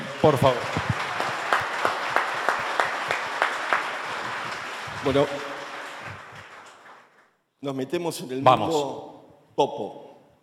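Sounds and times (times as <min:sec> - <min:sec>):
audience applause: 0:00.0 - 0:07.3
speech: 0:00.2 - 0:01.0, 0:05.0 - 0:05.4, 0:07.6 - 0:10.0.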